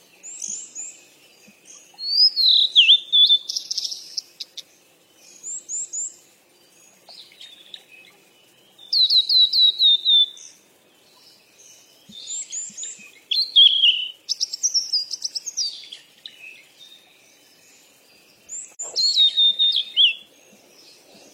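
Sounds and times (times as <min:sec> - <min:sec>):
bird chirping and whistling: 0:00.0 - 0:21.3.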